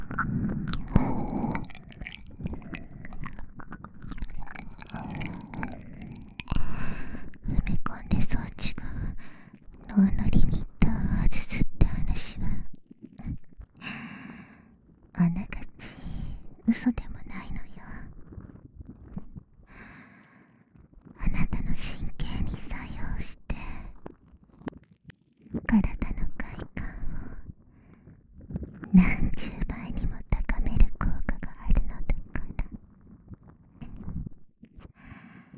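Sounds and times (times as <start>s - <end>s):
binaural whispering ASMR: 0.1s - 3.6s, 4.2s - 9.2s, 9.8s - 13.4s, 15.2s - 18.2s, 21.2s - 24.0s, 25.7s - 27.5s, 28.8s - 32.8s, 33.8s - 34.3s
binaural ear licking ASMR: 0.7s - 7.8s.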